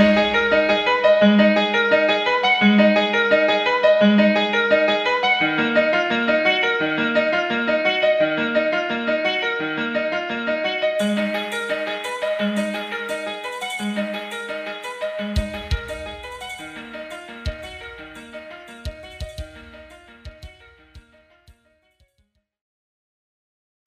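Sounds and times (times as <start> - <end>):
resonant piano loop: 0.0 - 21.6
drums: 15.4 - 21.1.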